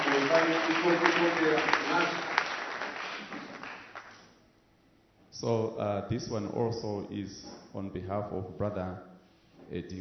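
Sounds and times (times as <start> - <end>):
audience applause: 0.0 - 4.2
speech: 0.4 - 2.4, 5.4 - 9.1, 9.7 - 9.9.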